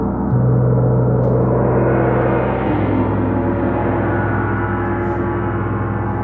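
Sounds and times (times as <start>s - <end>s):
gong bath gongs humming in a church hall in Ainsdale Merseyside: 0.1s - 6.2s.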